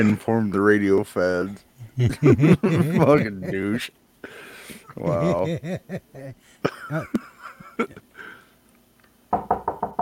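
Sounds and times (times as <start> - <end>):
speech: 0.0 - 4.0, 5.0 - 8.0
laughter: 1.8 - 3.8, 4.9 - 8.0
knocking at a door: 9.3 - 9.9.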